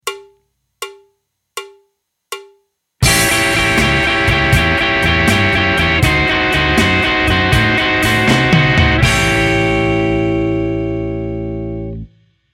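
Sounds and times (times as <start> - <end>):
blues music: 3.0 - 12.1.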